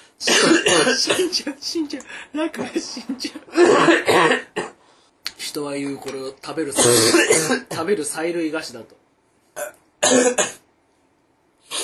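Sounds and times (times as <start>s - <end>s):
person coughing after spicy soup went down the windpipe: 0.2s - 1.6s, 2.6s - 4.8s, 6.8s - 7.8s, 9.6s - 10.6s, 11.7s - 11.8s
speech: 0.2s - 4.4s, 5.5s - 9.0s, 9.6s - 10.6s.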